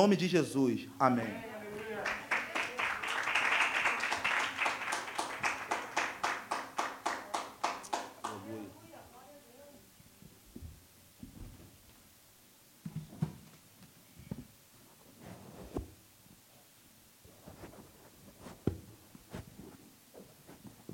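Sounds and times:
speech: 0.0s - 2.2s
crowd clapping in unison: 1.2s - 8.7s.

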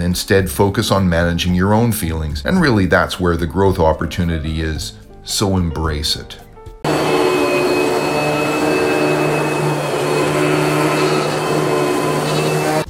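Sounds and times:
speech: 0.1s - 6.4s
vacuum cleaner running: 6.8s - 12.8s.

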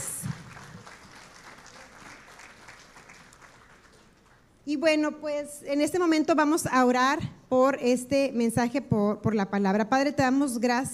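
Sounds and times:
audience clapping: 0.0s - 4.5s
speech: 4.7s - 10.9s.

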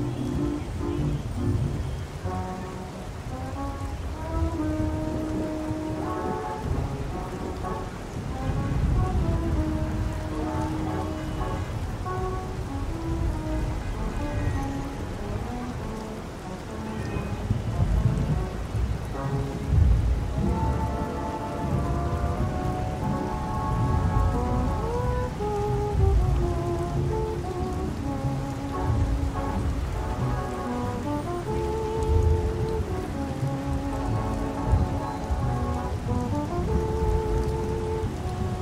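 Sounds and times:
oldies music playing in another room: 0.0s - 38.6s
traffic noise from an open window: 0.0s - 38.6s.

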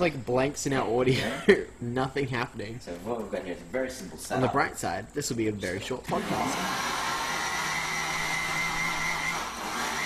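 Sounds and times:
speech: 0.0s - 6.9s
blender whirring: 6.1s - 10.0s.

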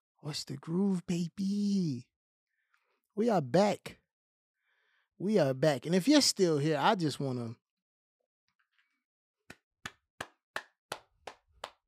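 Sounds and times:
speech: 0.2s - 2.1s, 3.2s - 4.0s, 5.2s - 7.6s
hand clapping: 9.5s - 11.8s.

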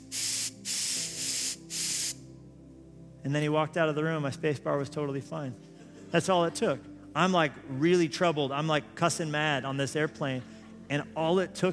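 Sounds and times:
can of compressed air spraying: 0.0s - 2.2s
speech: 3.2s - 11.7s.

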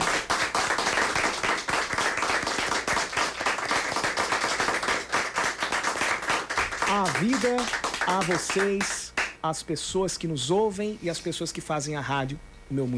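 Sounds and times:
round of applause: 0.0s - 9.4s
speech: 7.0s - 12.9s.

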